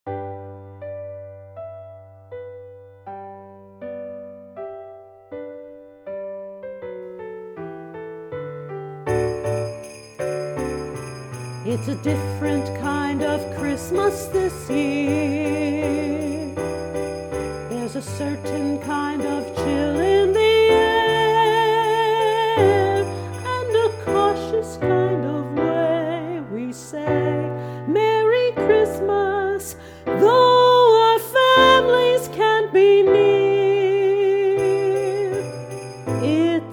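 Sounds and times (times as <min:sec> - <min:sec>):
piano chords: 0:00.1 - 0:36.7
sleigh bells: 0:07.7 - 0:26.4, 0:30.7 - 0:36.7
solo voice singing: 0:11.7 - 0:16.7, 0:17.7 - 0:35.6.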